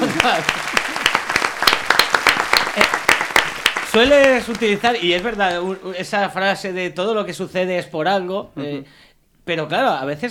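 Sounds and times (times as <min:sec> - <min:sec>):
audience applause: 0:00.0 - 0:05.7
speech: 0:00.2 - 0:00.8, 0:03.9 - 0:10.2.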